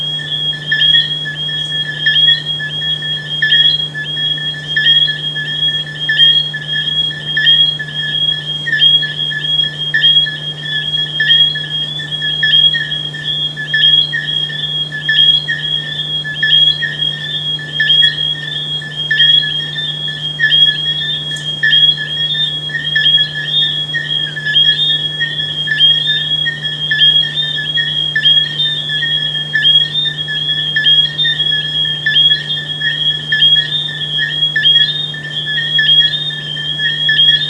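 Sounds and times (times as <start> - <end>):
frogs: 0.0 - 37.4.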